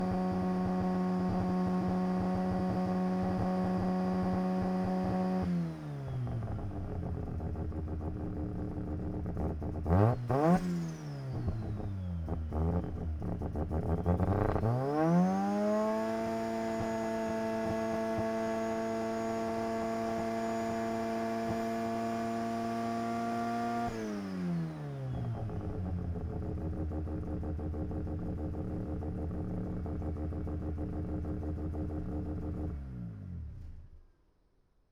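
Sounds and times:
1990 Mazda RX7 engine idling and revving in neutral: 0:00.0 - 0:34.0.

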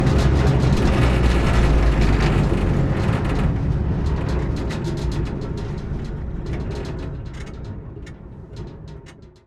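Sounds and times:
M16 halftrack driving onboard ramps with rear flatbed: 0:00.0 - 0:07.2.

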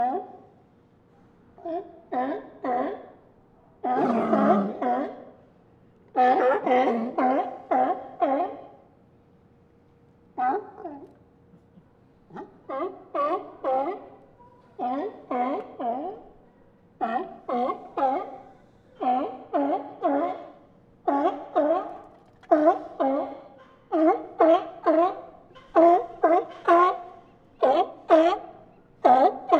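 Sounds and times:
group of sea lions barking: 0:03.8 - 0:05.4, 0:06.2 - 0:08.9, 0:10.4 - 0:11.1, 0:12.3 - 0:16.4, 0:17.0 - 0:29.5.

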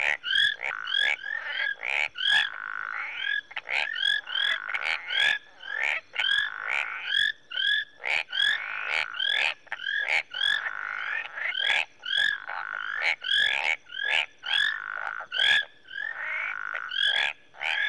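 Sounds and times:
marsh frogs and tree frogs calling in Rwanda: 0:00.0 - 0:17.8.

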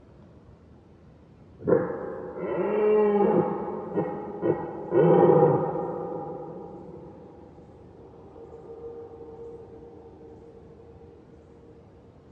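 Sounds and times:
red deer roaring: 0:01.6 - 0:07.6.

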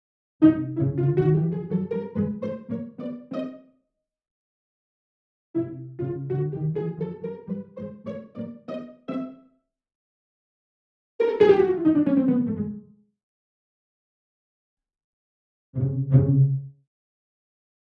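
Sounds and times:
cartoon pizzicato: 0:00.4 - 0:03.7, 0:05.6 - 0:09.4, 0:11.2 - 0:12.8.

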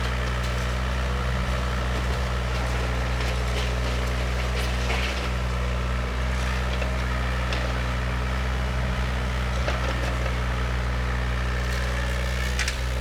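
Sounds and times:
construction site ambience: 0:00.0 - 0:12.9.

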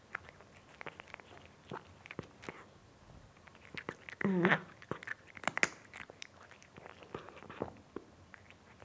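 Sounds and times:
cat eating crunchy food: 0:00.0 - 0:08.8.

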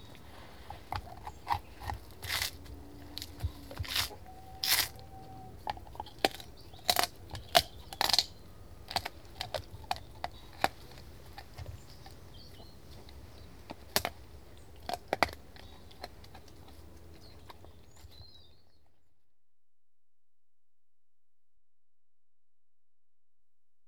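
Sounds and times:
dog eating bones: 0:00.0 - 0:18.2.

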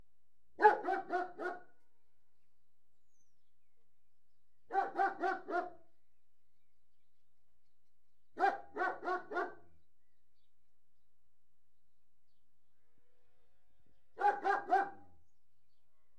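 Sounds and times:
German Shepherd barking indoors: 0:00.6 - 0:01.7, 0:04.7 - 0:05.8, 0:08.4 - 0:09.7, 0:14.2 - 0:15.1.

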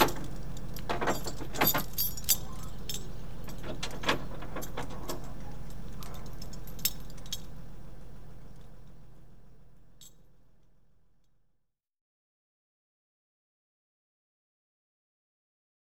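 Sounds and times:
refuse skip truck approaching and delivering: 0:00.0 - 0:10.3.

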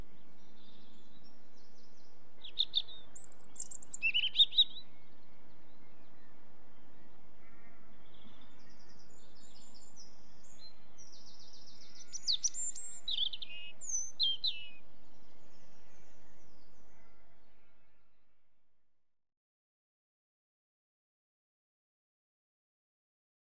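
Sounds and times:
robin: 0:00.0 - 0:18.1.

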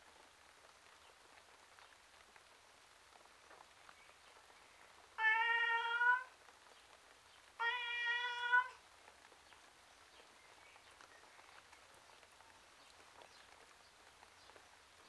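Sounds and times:
domestic tom cat meowing outside: 0:05.2 - 0:06.3, 0:07.6 - 0:08.8.

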